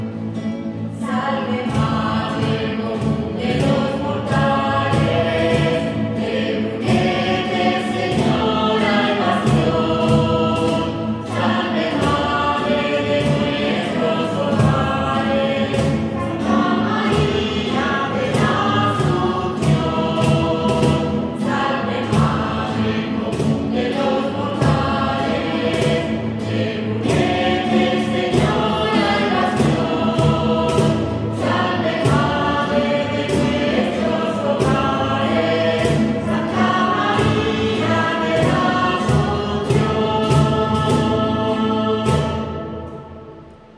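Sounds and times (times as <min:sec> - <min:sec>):
hymn: 0:00.1 - 0:43.7.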